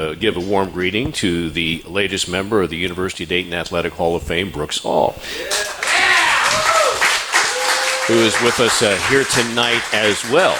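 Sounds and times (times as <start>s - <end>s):
speech: 0.0s - 5.8s, 8.1s - 10.5s
whoops and shouts: 5.4s - 8.4s
crowd applause: 5.4s - 10.5s.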